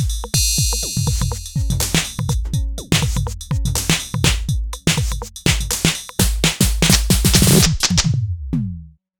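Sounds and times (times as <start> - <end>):
virtual analog drums: 0.0 - 8.8.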